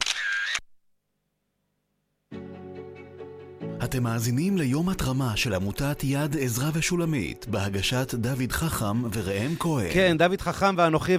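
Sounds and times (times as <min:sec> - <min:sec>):
camera shutter taking a photo for Instagram: 0:00.0 - 0:00.7
speech: 0:03.8 - 0:11.1.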